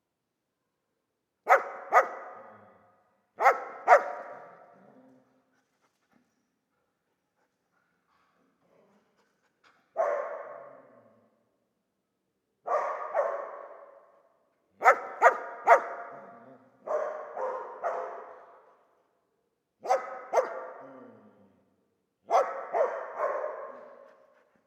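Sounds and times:
dog barking: 1.5s - 4.7s, 9.9s - 11.2s, 12.6s - 18.8s, 19.8s - 21.2s, 22.3s - 24.5s.

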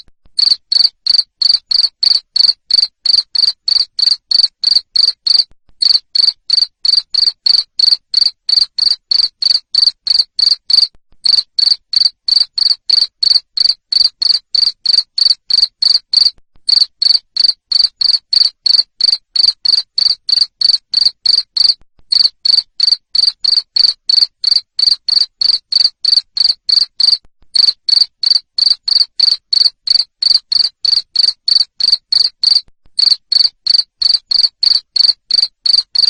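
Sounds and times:
cricket chirping: 0.4s - 36.0s.

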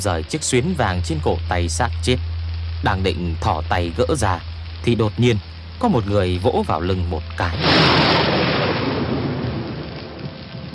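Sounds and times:
speech: 0.0s - 8.4s
thunder crash: 7.5s - 10.7s.

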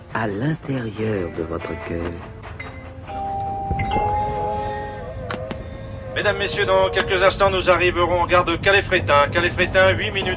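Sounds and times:
train in motion: 0.0s - 10.3s
speech: 0.1s - 2.4s, 3.7s - 4.4s, 6.2s - 10.3s
sustained tonal whines of a train: 2.8s - 10.3s.

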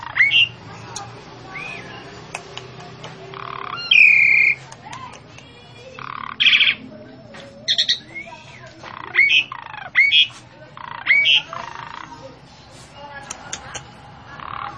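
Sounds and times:
female Javan pied starling giving harsh squawks and whistled notes: 0.0s - 0.6s, 1.4s - 2.2s, 3.2s - 4.6s, 5.8s - 12.2s.

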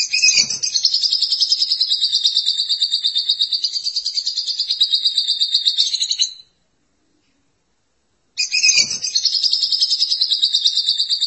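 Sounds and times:
lovebird singing: 0.0s - 6.4s, 8.4s - 11.2s.

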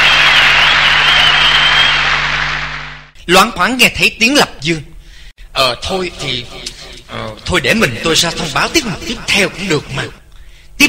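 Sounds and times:
applause after a singer finishes two songs at a contest: 0.0s - 3.1s
speech: 3.3s - 4.9s, 5.6s - 10.2s.

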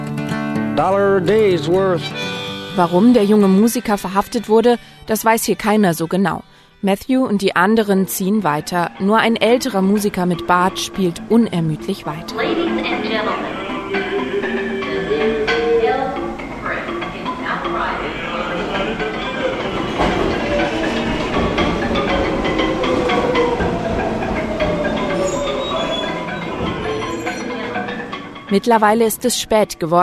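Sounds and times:
speech: 0.8s - 13.6s, 28.5s - 30.0s
passengers' voices murmuring on a crowded New York train: 7.6s - 30.0s
crowded train in New York rumbling on rails at night: 9.1s - 29.0s
high wavering train wheel squeals: 9.4s - 28.6s.

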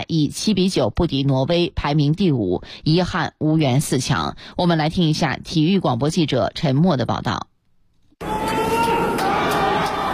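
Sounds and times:
speech: 0.0s - 7.5s
crowd cheering from the stands at a curling mixed doubles playoff: 8.2s - 10.1s.

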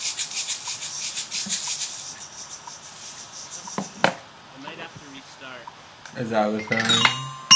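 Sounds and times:
shaker being shaken: 0.0s - 5.1s
speech: 5.3s - 7.4s.

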